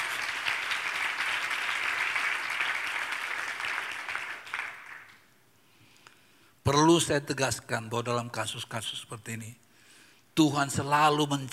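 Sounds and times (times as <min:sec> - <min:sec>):
audience applause: 0:00.0 - 0:05.2
speech: 0:06.7 - 0:09.6, 0:10.4 - 0:11.5.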